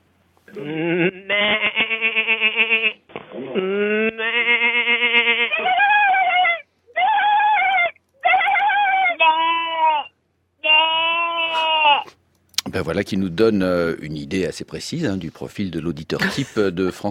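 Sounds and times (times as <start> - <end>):
speech: 0.5 - 3.0, 12.9 - 17.1
human voices imitating a goat's bleat: 0.5 - 12.2.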